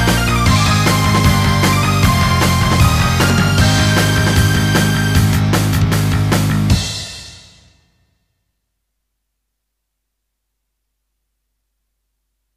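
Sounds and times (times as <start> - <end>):
band playing in a session: 0.0 - 7.0.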